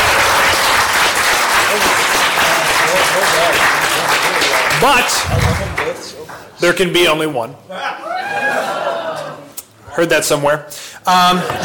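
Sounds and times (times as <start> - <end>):
audience applause: 0.0 - 6.4
speech: 4.8 - 5.4, 6.6 - 8.0, 10.0 - 11.6
laughter: 7.8 - 9.6, 11.3 - 11.6.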